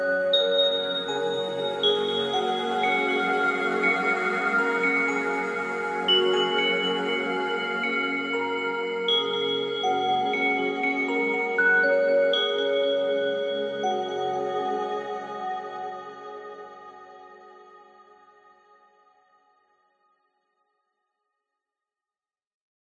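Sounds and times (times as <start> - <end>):
sleepy happy twinkling relaxed chilled musical soundscape: 0.0 - 19.2.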